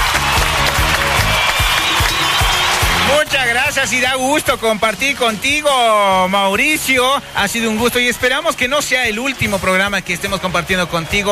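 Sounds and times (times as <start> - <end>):
audience applause: 0.0 - 6.6
speech: 3.7 - 11.3.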